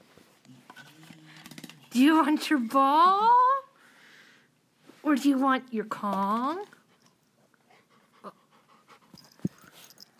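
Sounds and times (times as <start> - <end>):
speech: 2.0 - 3.4, 5.1 - 6.8
dog panting: 6.8 - 10.1.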